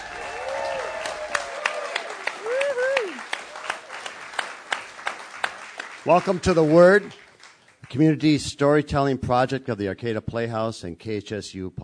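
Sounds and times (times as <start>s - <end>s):
audience applause at the Arcata Playhouse: 0.0s - 7.8s
speech: 6.0s - 7.2s, 7.9s - 11.8s.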